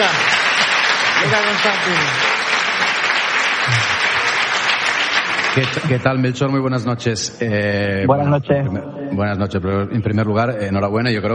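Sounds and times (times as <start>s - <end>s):
radio programme audience applause: 0.0s - 6.1s
speech: 1.2s - 3.0s, 3.7s - 4.1s, 5.6s - 11.3s.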